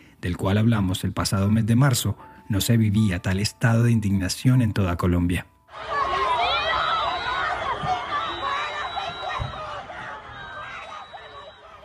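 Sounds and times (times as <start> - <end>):
speech: 0.2 - 6.0
crowd shouting angrily: 5.7 - 11.8
high-pitched cries: 5.7 - 11.8.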